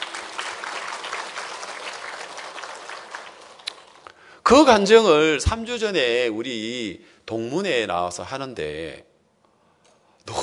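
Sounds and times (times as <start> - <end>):
church congregation applauding during a Korean service: 0.0 - 4.1
speech: 4.5 - 9.1.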